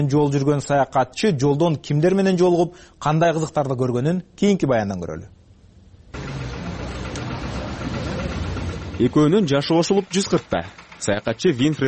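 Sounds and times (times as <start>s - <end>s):
speech: 0.0s - 5.4s, 9.0s - 11.8s
old 56-year-old tractor engine running: 5.8s - 11.8s.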